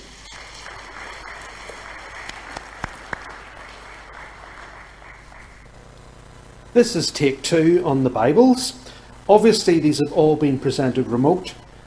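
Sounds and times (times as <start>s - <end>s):
audience applause: 0.0s - 5.7s
speech: 6.8s - 11.6s.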